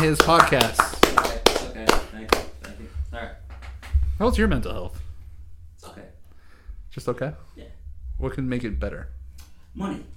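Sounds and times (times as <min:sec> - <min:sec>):
speech: 0:00.0 - 0:00.8, 0:04.2 - 0:05.0, 0:07.0 - 0:09.2, 0:09.8 - 0:10.1
people clapping: 0:00.0 - 0:02.8.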